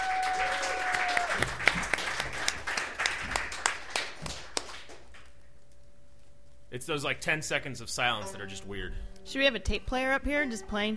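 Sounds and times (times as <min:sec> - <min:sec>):
audience applause: 0:00.0 - 0:05.3
speech: 0:06.8 - 0:10.9.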